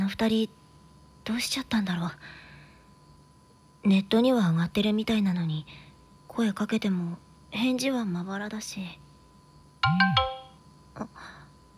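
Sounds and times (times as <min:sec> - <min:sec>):
speech: 0:00.1 - 0:00.6, 0:01.2 - 0:02.4, 0:03.8 - 0:05.8, 0:06.4 - 0:09.0, 0:09.8 - 0:10.4, 0:11.0 - 0:11.4
phone message notification chime: 0:09.8 - 0:10.5.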